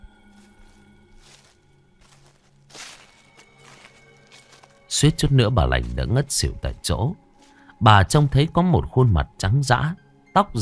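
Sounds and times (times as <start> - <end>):
rustling footsteps through cornfield: 0.3 - 7.7
speech: 5.0 - 7.2, 7.8 - 10.5.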